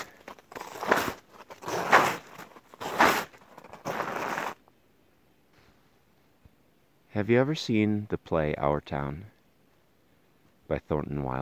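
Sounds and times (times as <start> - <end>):
snow crunching under footsteps: 0.0 - 4.6
speech: 7.2 - 9.4, 10.7 - 11.4.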